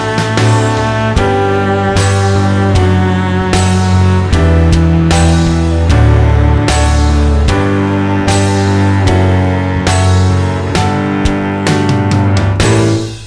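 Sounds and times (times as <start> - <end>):
accompaniment in D major: 0.0 - 13.2.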